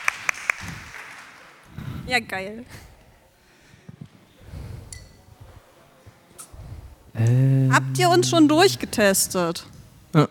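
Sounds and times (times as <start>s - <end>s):
applause: 0.0s - 1.7s
speech: 2.1s - 2.9s, 7.3s - 10.2s.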